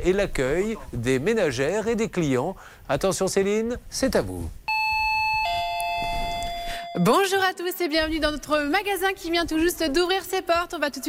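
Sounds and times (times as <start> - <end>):
speech: 0.0 - 4.6, 6.9 - 11.0
two-note electronic shop jingle chime: 4.7 - 7.1.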